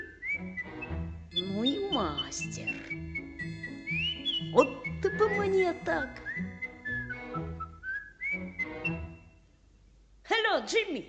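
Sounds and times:
boy whistling a bird-like tune: 0.0 - 9.4
low accompanying tones: 0.8 - 7.7
speech: 1.6 - 2.8, 4.5 - 6.5, 10.6 - 11.0.

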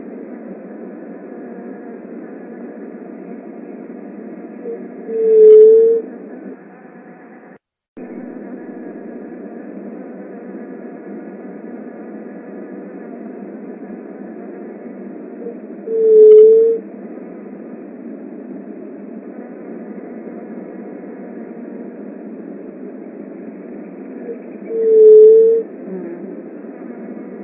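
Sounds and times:
Leptotila dove soft hollow hoot: 4.6 - 6.1, 15.4 - 16.8, 19.6 - 27.4.

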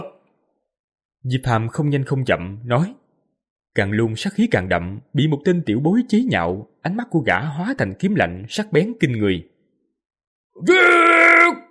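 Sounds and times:
speech: 1.2 - 3.0, 3.8 - 9.5, 10.6 - 11.0
man roaring: 10.6 - 11.6.

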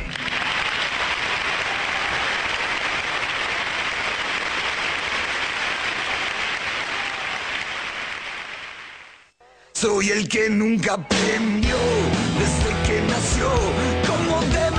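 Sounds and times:
audience applauding an interviewee on a talk program: 0.0 - 9.3
speech: 9.8 - 14.6.

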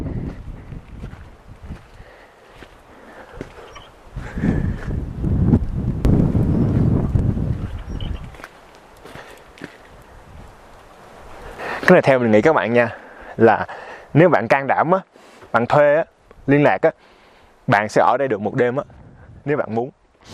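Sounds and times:
wind blowing in an abandoned ghost town in the United States: 0.0 - 13.5, 18.7 - 20.3
soft footsteps scuffing: 0.3 - 1.9, 2.5 - 2.8, 3.4 - 3.8, 7.6 - 9.9
speech: 11.9 - 20.3.

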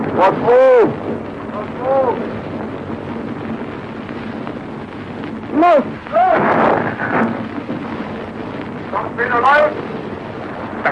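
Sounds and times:
submarine torpedo hissing out of its launch tube: 0.0 - 10.9
speech: 0.2 - 2.5, 5.6 - 6.4, 9.2 - 9.9.

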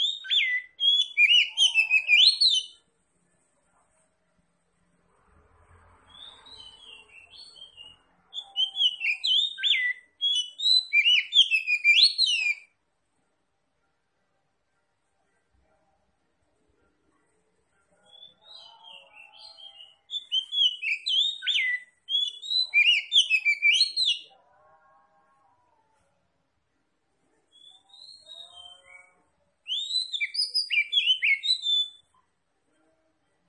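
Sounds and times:
Oriental magpie-robin singing: 0.0 - 2.8, 6.1 - 12.7, 18.0 - 24.3, 27.5 - 32.1.

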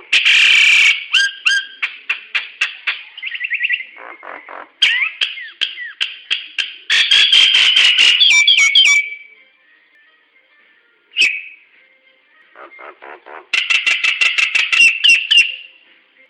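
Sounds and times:
hill myna vocalizations: 0.0 - 9.2, 12.5 - 15.7.

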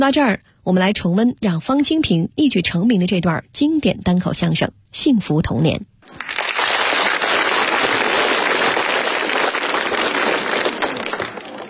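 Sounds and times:
speech: 0.0 - 5.9
audience applause: 6.1 - 11.6.

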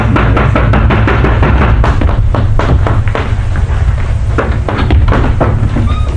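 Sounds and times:
loud knocking on a door: 0.0 - 3.3, 4.4 - 6.0.

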